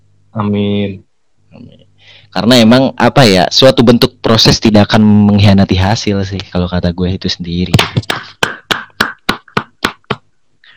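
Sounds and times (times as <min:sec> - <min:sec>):
speech: 0:00.4 - 0:08.4
hand clapping: 0:07.7 - 0:10.3.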